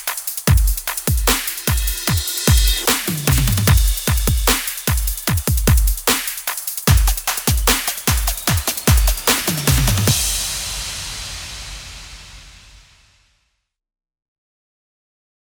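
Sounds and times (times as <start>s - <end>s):
EDM trap music bed in A minor: 0.0s - 12.0s.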